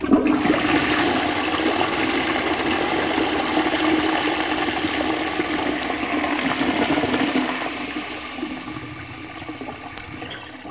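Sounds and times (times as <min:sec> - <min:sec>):
toilet flush: 0:00.0 - 0:10.6.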